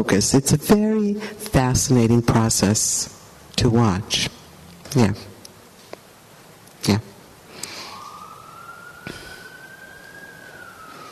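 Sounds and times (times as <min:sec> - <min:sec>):
speech: 0:00.0 - 0:05.3, 0:06.8 - 0:07.1
siren outside: 0:07.6 - 0:11.0.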